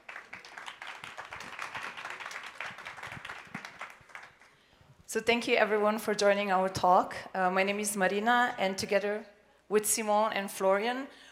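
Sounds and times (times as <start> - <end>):
audience applause for speakers at a talk on crypto regulation: 0.0 - 4.5
speech: 5.1 - 11.2.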